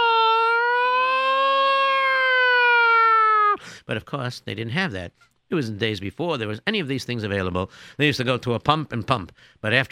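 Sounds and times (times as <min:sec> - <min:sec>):
old-fashioned fire engine siren wailing: 0:00.0 - 0:03.4
speech: 0:03.9 - 0:09.9.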